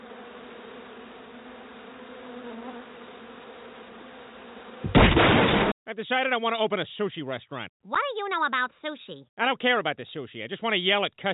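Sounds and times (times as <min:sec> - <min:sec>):
swarm of bees buzzing: 0:00.0 - 0:05.6
speech: 0:05.9 - 0:11.3.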